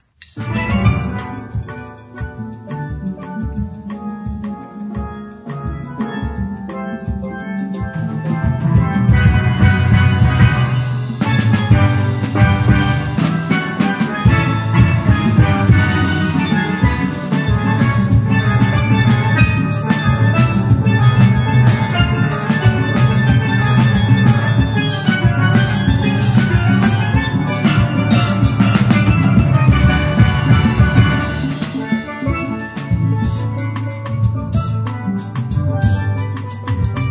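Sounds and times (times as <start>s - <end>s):
calypso music: 0.0s - 37.1s.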